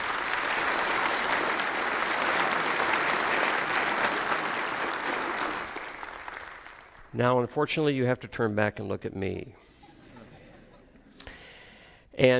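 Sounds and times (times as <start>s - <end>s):
audience applause: 0.0s - 7.1s
speech: 7.2s - 9.8s, 12.2s - 12.3s.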